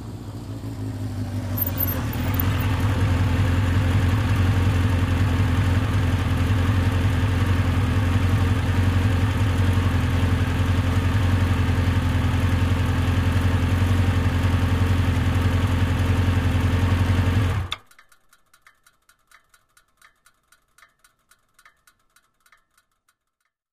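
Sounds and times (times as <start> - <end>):
motorcycle approaching and turning off: 0.0 - 17.7.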